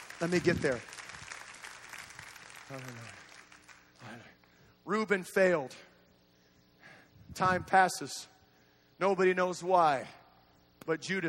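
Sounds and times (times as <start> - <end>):
church congregation clapping along: 0.0 - 4.2
speech: 0.2 - 1.0, 2.7 - 3.2, 4.0 - 5.9, 7.4 - 8.3, 9.0 - 10.2, 10.9 - 11.2.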